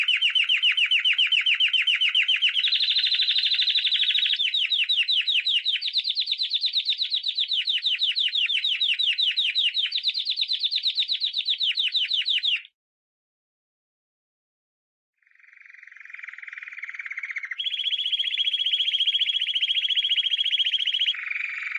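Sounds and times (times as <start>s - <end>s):
canary song of rapid buzzy trills: 0.0s - 12.7s, 15.2s - 21.7s.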